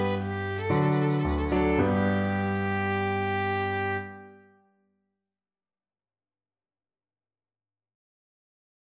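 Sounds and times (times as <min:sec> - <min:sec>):
violin: 0:00.0 - 0:04.6.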